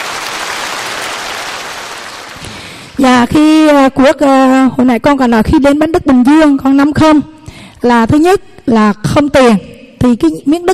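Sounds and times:
audience clapping: 0.0s - 3.0s
speech: 3.0s - 10.7s.

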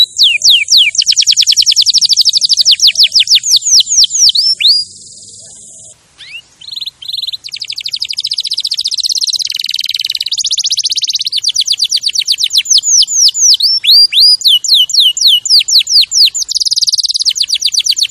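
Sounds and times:
canary singing: 0.0s - 18.0s.

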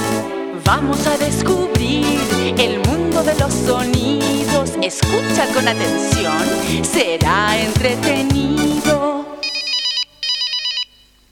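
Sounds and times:
speech: 0.7s - 9.3s
telephone ringing: 9.4s - 11.3s.

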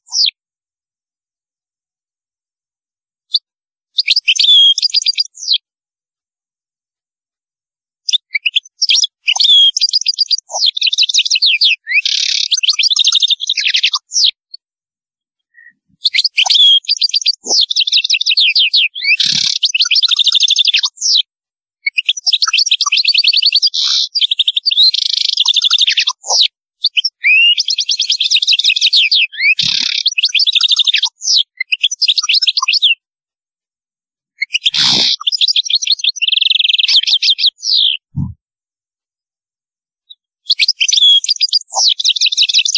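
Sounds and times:
European goldfinch song: 0.0s - 0.4s, 4.0s - 5.6s, 8.1s - 14.4s, 15.5s - 21.3s, 21.9s - 33.0s, 34.4s - 38.1s, 40.1s - 42.7s.

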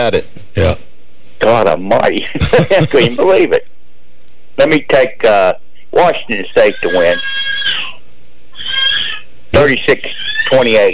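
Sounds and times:
speech: 0.0s - 0.8s, 1.4s - 3.7s, 4.6s - 7.5s, 9.5s - 10.9s
laughter: 2.3s - 3.3s
child screaming: 7.0s - 8.0s, 8.6s - 9.3s.

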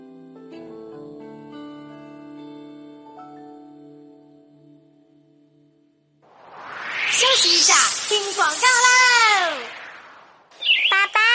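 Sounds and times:
speech: 7.2s - 9.0s
bird chirping in a car rental advertisement: 10.6s - 11.3s.

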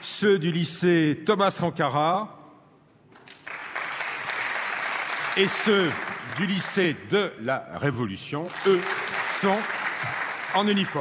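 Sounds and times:
speech: 0.2s - 2.4s, 5.4s - 10.9s
student audience applause at a history talk: 3.1s - 7.2s, 8.3s - 10.9s.

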